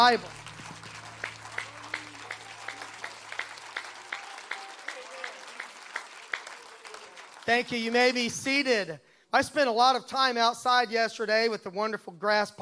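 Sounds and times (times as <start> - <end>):
speech: 0.0 - 0.4, 7.5 - 12.6
audience applause: 0.0 - 8.2.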